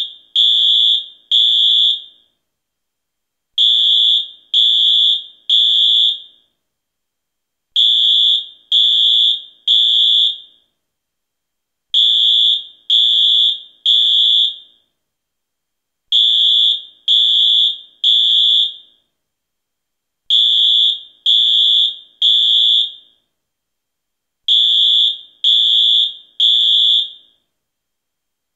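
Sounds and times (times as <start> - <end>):
fire alarm: 0.0 - 2.4, 3.6 - 6.6, 7.8 - 10.8, 11.9 - 14.9, 16.1 - 19.1, 20.3 - 23.3, 24.5 - 27.5.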